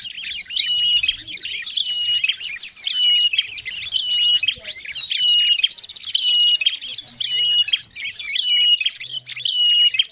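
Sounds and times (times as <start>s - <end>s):
birds chirping in a busy chorus used as a lure for trapping birds: 0.0s - 10.1s.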